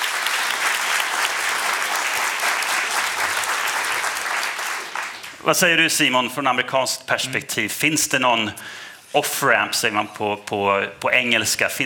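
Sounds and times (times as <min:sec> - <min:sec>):
audience applause: 0:00.0 - 0:05.4
speech: 0:05.4 - 0:11.8.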